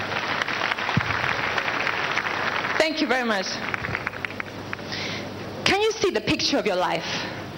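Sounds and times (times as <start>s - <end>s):
audience clapping: 0.0s - 5.0s
speech: 2.8s - 3.8s, 6.1s - 7.4s.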